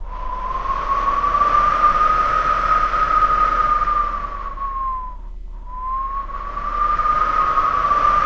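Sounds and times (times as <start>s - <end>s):
vocal howling wind: 0.0s - 8.2s.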